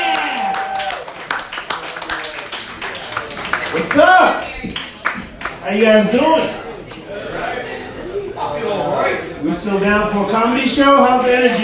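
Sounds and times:
people cheering: 0:00.0 - 0:05.2
audience clapping: 0:00.0 - 0:05.9
speech: 0:05.7 - 0:06.6, 0:09.4 - 0:11.6.

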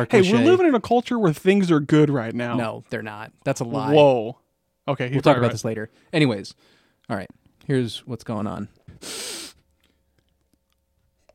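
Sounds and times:
speech: 0:00.0 - 0:09.5
sniff: 0:08.9 - 0:09.6.

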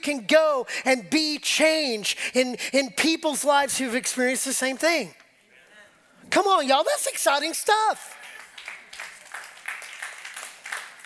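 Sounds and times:
speech: 0:00.0 - 0:05.2, 0:06.3 - 0:08.2
courtesy clap from audience: 0:08.2 - 0:11.0.

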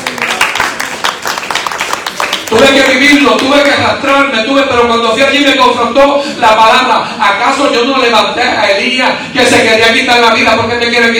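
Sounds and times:
audience applause: 0:00.0 - 0:03.1
speech: 0:02.5 - 0:11.1.

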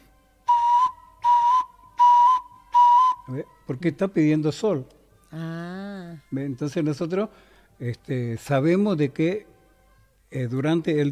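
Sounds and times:
person whistling imitating a small dove's call: 0:00.5 - 0:03.3
speech: 0:03.3 - 0:09.5, 0:10.3 - 0:11.1.

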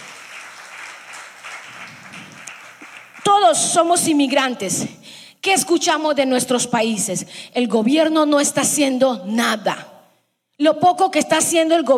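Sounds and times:
audience applauding: 0:00.0 - 0:03.4
speech: 0:03.3 - 0:09.9, 0:10.6 - 0:11.9.

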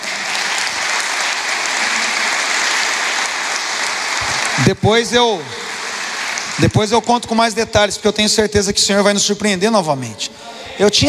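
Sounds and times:
audience applause: 0:00.0 - 0:07.6
speech: 0:04.6 - 0:05.6, 0:06.6 - 0:11.0.

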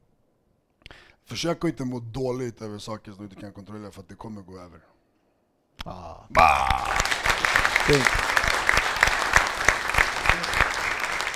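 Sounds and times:
speech: 0:01.3 - 0:04.9, 0:05.8 - 0:07.0, 0:07.9 - 0:08.3
audience applause: 0:06.4 - 0:11.3.

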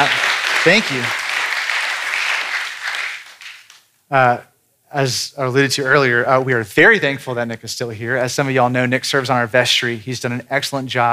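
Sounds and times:
audience applause: 0:00.0 - 0:03.8
speech: 0:00.6 - 0:01.2, 0:04.1 - 0:11.1.

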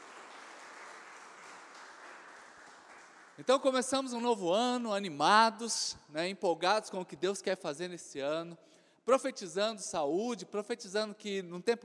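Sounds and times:
audience applause: 0:00.0 - 0:03.7
speech: 0:03.4 - 0:11.8.

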